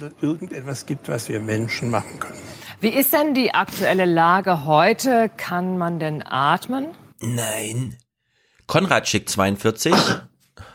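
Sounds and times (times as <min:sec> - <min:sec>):
speech: 0:00.0 - 0:08.0, 0:08.7 - 0:10.7
sneeze: 0:09.9 - 0:10.3.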